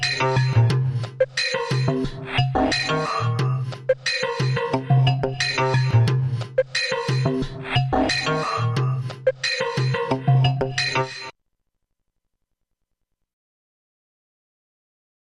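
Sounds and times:
rhythm: 0.0s - 11.3s.

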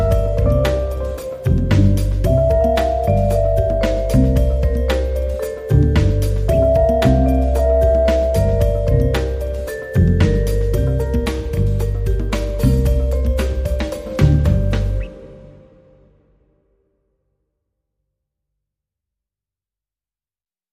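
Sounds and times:
drum loop: 0.0s - 15.1s.

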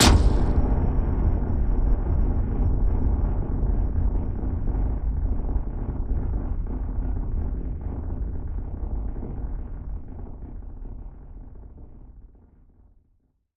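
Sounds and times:
hard impact: 0.0s - 1.1s
rumble: 0.0s - 13.2s.

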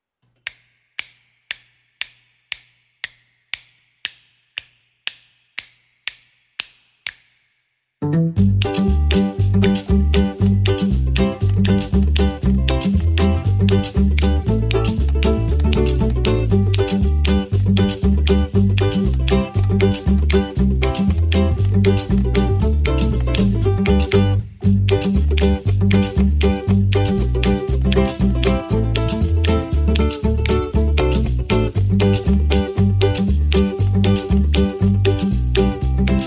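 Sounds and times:
christmas song: 8.0s - 36.2s.

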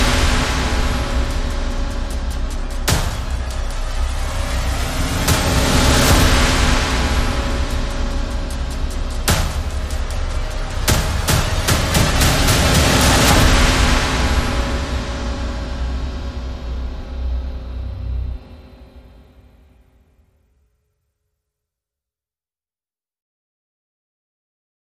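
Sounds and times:
drums: 0.0s - 19.3s
sound effects: 0.0s - 19.8s
bass: 0.0s - 20.0s.

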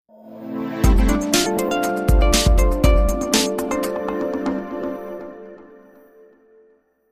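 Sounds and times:
funk music: 0.6s - 5.8s.

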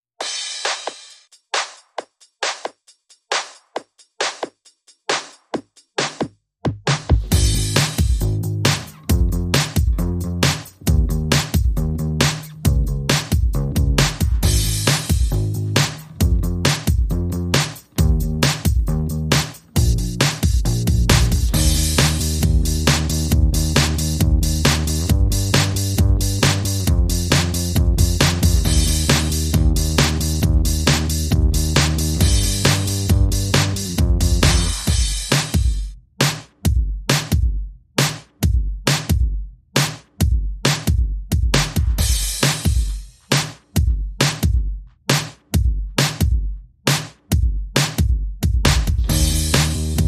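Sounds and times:
drums: 0.1s - 50.0s
bass: 7.1s - 35.8s, 48.6s - 50.0s.

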